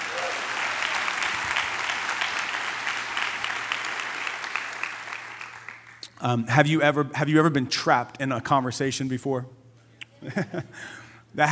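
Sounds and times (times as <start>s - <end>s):
audience clapping hands: 0.0s - 6.2s
speech: 6.2s - 9.6s, 10.2s - 11.5s.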